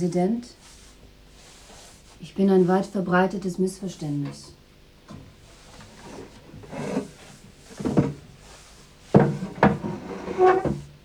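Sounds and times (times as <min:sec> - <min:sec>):
speech: 0:00.0 - 0:00.8, 0:02.2 - 0:05.2, 0:10.4 - 0:10.8
wooden chair being set down: 0:05.1 - 0:08.3, 0:09.1 - 0:10.9.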